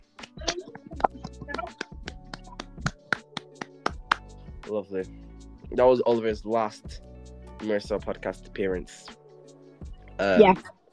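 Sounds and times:
people clapping: 0.2 - 4.2
speech: 4.7 - 9.2, 10.2 - 10.8.

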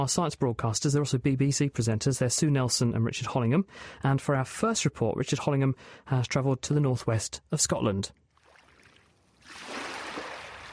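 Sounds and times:
speech: 0.0 - 8.2
waves lapping on a pebble beach: 8.4 - 10.7.

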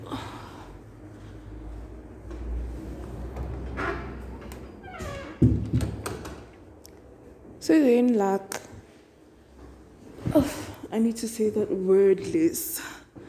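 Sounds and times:
door being closed: 3.3 - 6.5
speech: 7.7 - 8.6, 11.0 - 12.9.

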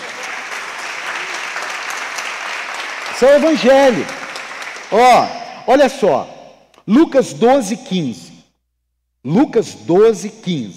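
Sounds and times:
audience applauding: 0.0 - 5.3
speech: 3.2 - 4.2, 4.9 - 6.3, 6.9 - 8.3, 9.2 - 10.7.

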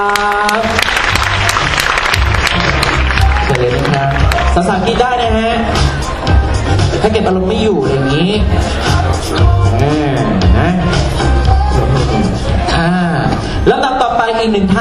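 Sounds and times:
audience applause welcoming a speaker: 0.0 - 4.7
music with low bass and tonal lines: 0.7 - 13.6
speech: 7.0 - 11.4, 13.4 - 14.8.

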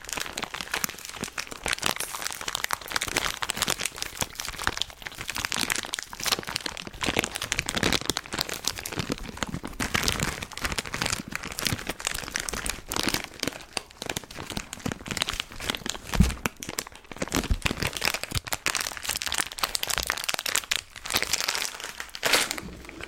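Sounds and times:
candy wrapper crinkling: 0.0 - 23.0.

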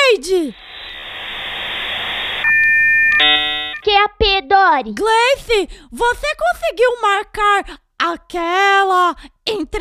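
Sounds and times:
speech: 0.2 - 0.7, 4.5 - 9.7
one-second ringtone jingle: 2.4 - 3.8.

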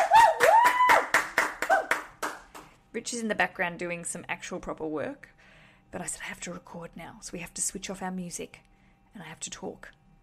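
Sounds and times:
small hand clapping: 0.0 - 2.7
speech: 2.9 - 10.0.

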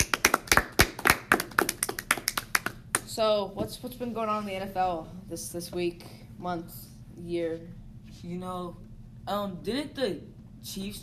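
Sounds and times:
applause sound effect: 0.0 - 3.0
speech: 3.2 - 11.0.

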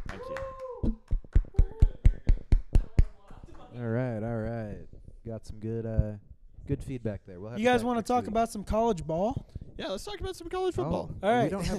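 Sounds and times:
hand claps: 0.0 - 3.7
speech: 5.4 - 11.7.

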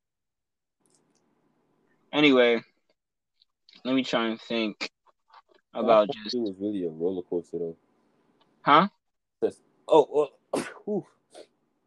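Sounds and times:
speech: 2.2 - 2.7, 3.8 - 4.9, 5.8 - 7.8, 8.6 - 11.5
sneeze: 10.6 - 11.5.

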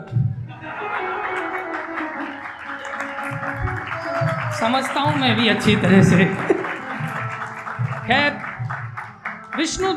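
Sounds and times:
laughter: 0.5 - 8.8
audience clapping loudly: 0.5 - 9.9
heavier low thumps: 3.3 - 9.0
speech: 4.6 - 6.6, 8.1 - 8.4, 9.6 - 9.9.

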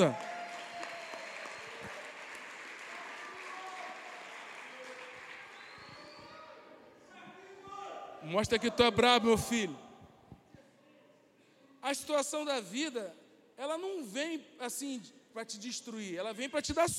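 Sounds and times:
speech: 0.0 - 0.2, 8.3 - 9.8, 11.8 - 16.9
audience applause: 0.0 - 6.2.

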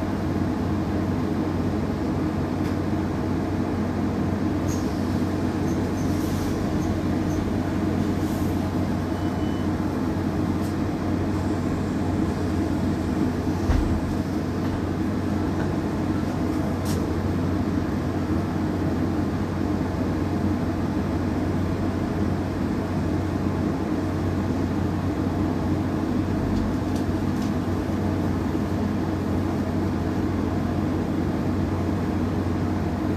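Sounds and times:
bus engine and road rumble during a bus ride: 0.0 - 33.1
brief thump: 13.7 - 14.0.

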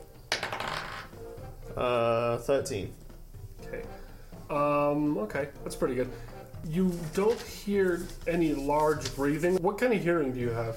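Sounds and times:
dice being rolled: 0.3 - 1.1
speech: 1.8 - 3.0, 3.7 - 10.7.

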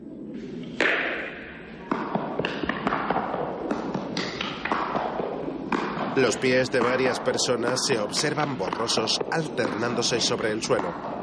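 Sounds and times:
black ball hitting hard against concrete wall: 0.7 - 11.2
speech: 6.2 - 11.2.

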